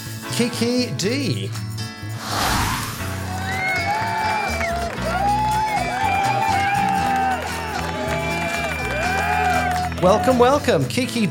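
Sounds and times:
speech: 0:00.4 - 0:01.7, 0:10.0 - 0:11.2
audience applause for arriving guest: 0:02.7 - 0:10.6.

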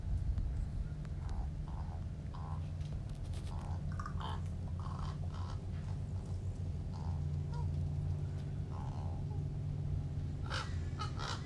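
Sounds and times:
low engine-like rumble: 0:00.0 - 0:11.4
crows cawing: 0:01.2 - 0:02.7, 0:03.5 - 0:06.0, 0:06.9 - 0:07.7, 0:08.7 - 0:09.2, 0:10.4 - 0:11.4.

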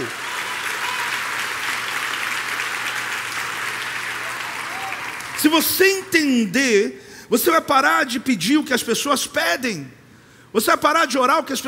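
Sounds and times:
audience applause: 0:00.0 - 0:05.8
speech: 0:05.4 - 0:11.6.

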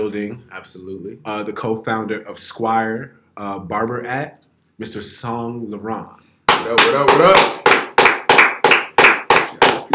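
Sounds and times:
speech: 0:00.0 - 0:07.7
extended clapping from the studio: 0:06.5 - 0:09.9.

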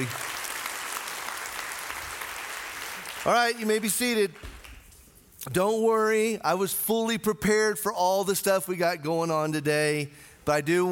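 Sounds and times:
speech: 0:00.0 - 0:00.2, 0:03.2 - 0:04.5, 0:05.4 - 0:10.9
audience applause: 0:00.0 - 0:03.7.

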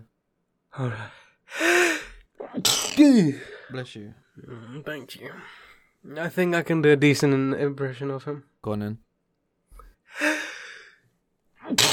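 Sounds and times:
speech: 0:00.8 - 0:01.9, 0:03.0 - 0:09.1, 0:10.1 - 0:10.4
sneeze: 0:02.4 - 0:03.1, 0:11.6 - 0:11.9.

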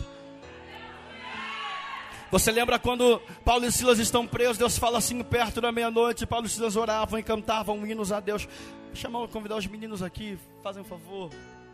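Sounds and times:
audience shouting freedom cry and cheering: 0:00.4 - 0:03.2
speech: 0:02.3 - 0:11.6.

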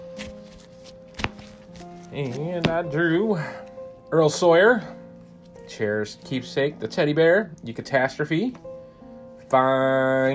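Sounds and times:
deck of cards being shuffled: 0:00.0 - 0:02.9
speech: 0:02.1 - 0:05.0, 0:05.7 - 0:08.7, 0:09.5 - 0:10.3.

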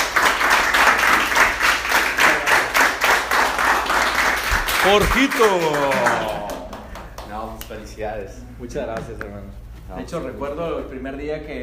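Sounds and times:
audience applause: 0:00.0 - 0:07.3
speech: 0:04.8 - 0:06.4, 0:08.0 - 0:11.6.

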